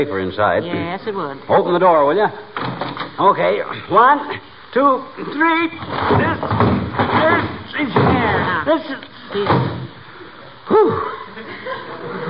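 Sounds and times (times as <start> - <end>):
speech: 0.0 - 6.6, 7.3 - 9.8, 10.7 - 12.2
heavy trunk set down with a solid thud: 5.8 - 8.5
people straining and grunting: 10.6 - 12.2
breathless chuckles: 10.7 - 12.2.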